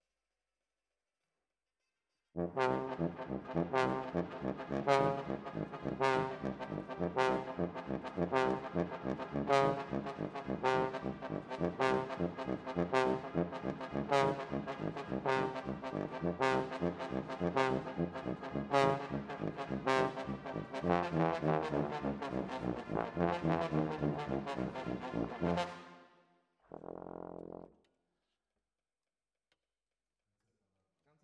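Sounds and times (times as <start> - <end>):
trombone: 2.4 - 26.0.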